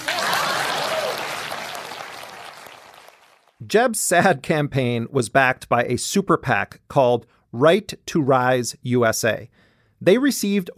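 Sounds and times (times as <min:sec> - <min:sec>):
vocal cheer: 0:00.0 - 0:01.9
audience applause: 0:00.0 - 0:03.6
speech: 0:03.7 - 0:10.7.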